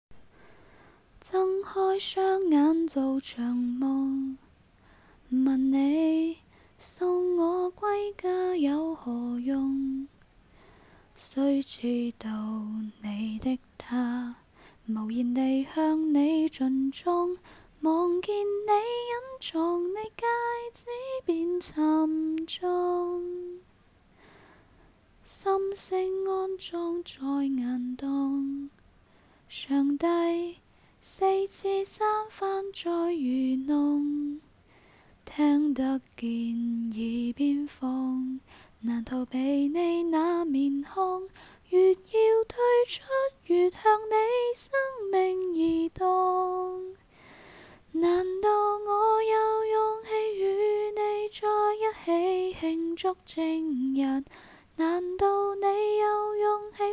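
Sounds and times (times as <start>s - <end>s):
person singing a cappella: 1.2s - 4.5s, 5.2s - 10.2s, 11.2s - 23.7s, 25.2s - 28.8s, 29.5s - 34.6s, 35.2s - 47.1s, 47.8s - 56.9s.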